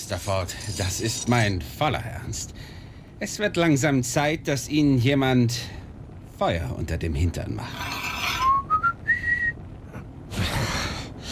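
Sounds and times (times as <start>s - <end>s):
speech: 0.1s - 5.8s, 6.4s - 8.0s
whistled melody: 8.4s - 9.6s.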